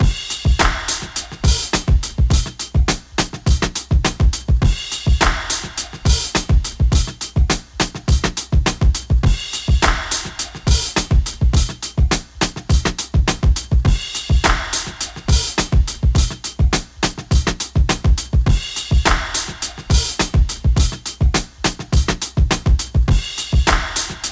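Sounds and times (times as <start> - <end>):
drum breaks: 0.0 - 24.3
splash clap: 0.6 - 2.0, 5.2 - 6.5, 9.8 - 11.1, 14.4 - 15.7, 19.1 - 20.3, 23.7 - 24.3.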